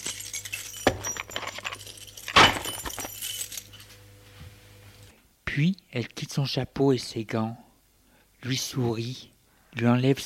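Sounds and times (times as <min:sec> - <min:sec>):
keys jangling as put into bag: 0:00.0 - 0:04.0
speech: 0:05.6 - 0:07.6, 0:08.4 - 0:10.2.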